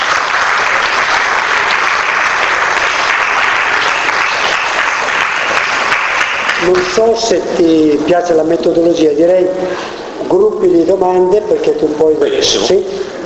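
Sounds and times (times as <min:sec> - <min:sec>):
audience applause: 0:00.0 - 0:07.0
speech: 0:06.6 - 0:13.1.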